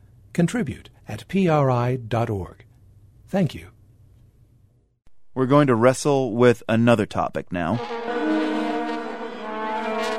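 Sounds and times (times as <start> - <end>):
speech: 0.4 - 2.7, 3.3 - 3.8, 5.4 - 8.1
vuvuzela horn blowing in South African stadiums: 7.7 - 10.1.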